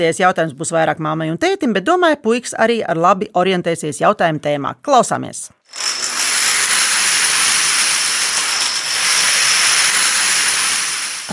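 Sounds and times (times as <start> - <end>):
speech: 0.0 - 6.0
domino tiles falling: 5.7 - 11.3.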